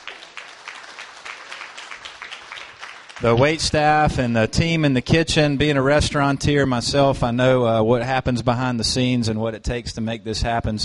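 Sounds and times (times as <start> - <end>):
audience applause: 0.0 - 3.7
speech: 3.2 - 10.8.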